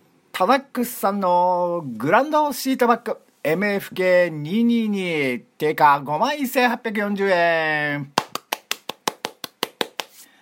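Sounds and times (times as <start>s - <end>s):
speech: 0.4s - 8.2s
hand claps: 8.2s - 10.3s.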